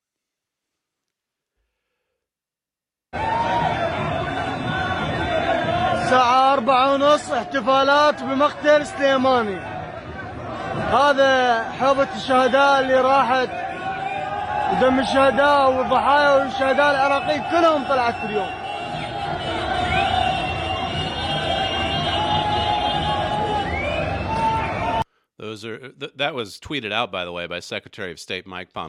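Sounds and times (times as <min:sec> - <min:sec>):
street crowd cheering: 0:03.1 - 0:25.0
speech: 0:06.1 - 0:09.7, 0:10.8 - 0:13.6, 0:14.7 - 0:18.6, 0:25.5 - 0:28.8.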